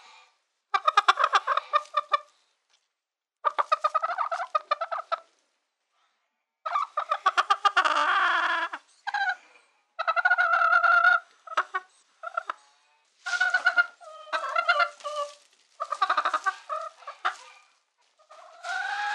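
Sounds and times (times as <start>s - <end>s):
chicken squawking in distress: 0.8s - 2.3s, 3.4s - 5.3s, 6.7s - 9.4s, 10.0s - 12.6s, 13.2s - 19.1s.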